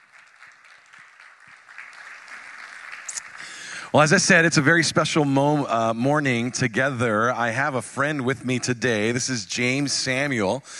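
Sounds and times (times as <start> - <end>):
audience applause: 0.0 - 4.4
speech: 3.9 - 10.7.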